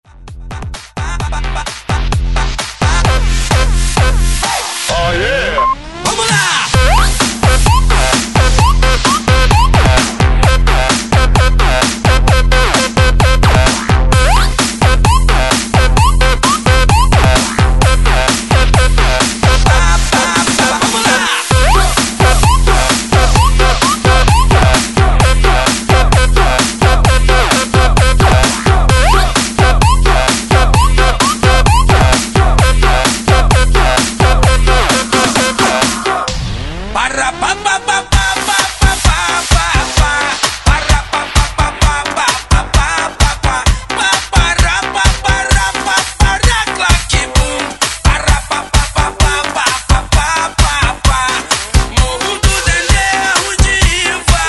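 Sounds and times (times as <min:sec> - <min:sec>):
130 bpm breakbeat mix: 0:00.0 - 0:54.4.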